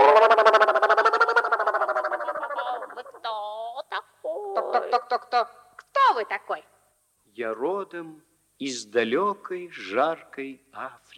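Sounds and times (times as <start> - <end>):
stork croaking call: 0.0 - 5.6
speech: 7.4 - 11.1.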